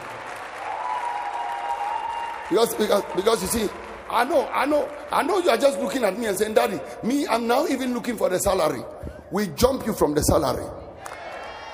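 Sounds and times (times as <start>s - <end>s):
crowd applauding: 0.0s - 6.8s
speech: 2.5s - 11.2s.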